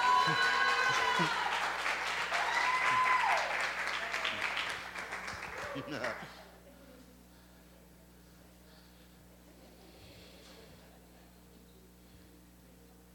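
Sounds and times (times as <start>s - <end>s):
laughter: 0.0s - 1.6s, 5.4s - 7.0s
audience applause: 0.0s - 6.5s
speech: 1.2s - 1.4s, 5.8s - 6.4s.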